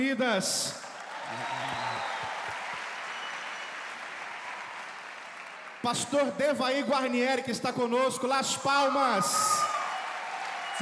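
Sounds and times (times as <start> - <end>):
speech: 0.0 - 2.0, 5.8 - 9.7
audience applause: 0.8 - 6.4, 8.8 - 10.8.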